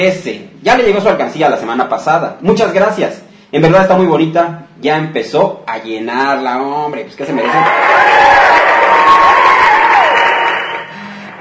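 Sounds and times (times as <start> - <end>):
speech: 0.0 - 9.3
audience applause: 7.3 - 11.4.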